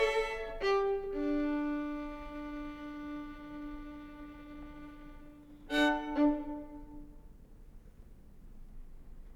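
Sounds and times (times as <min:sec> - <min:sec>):
two violins playing a duo: 0:00.0 - 0:07.3.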